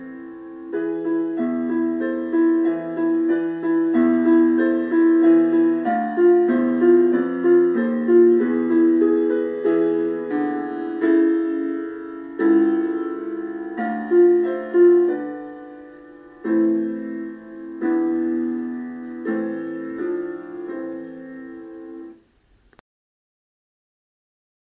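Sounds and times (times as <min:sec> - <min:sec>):
instrumental accompaniment only: 0:00.0 - 0:22.2.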